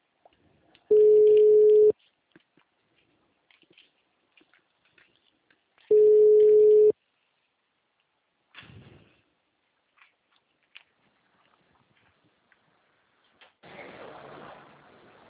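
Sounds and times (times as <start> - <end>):
telephone ringing tone: 0.9 - 1.9, 5.9 - 6.9.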